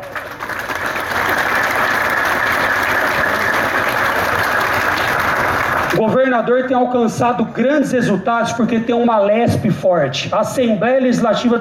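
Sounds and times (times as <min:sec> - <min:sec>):
audience applause: 0:00.0 - 0:06.0
speech: 0:06.0 - 0:11.5.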